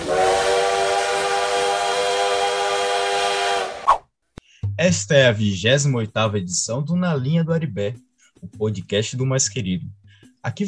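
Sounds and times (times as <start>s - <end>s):
steam locomotive whistle: 0.0s - 3.9s
speech: 4.8s - 10.6s.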